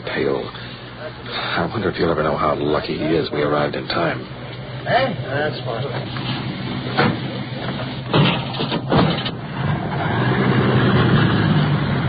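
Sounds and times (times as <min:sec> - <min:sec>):
speech: 0:00.2 - 0:00.6, 0:01.3 - 0:07.1
ambulance engine running as it leaves for the hospital: 0:05.3 - 0:12.0.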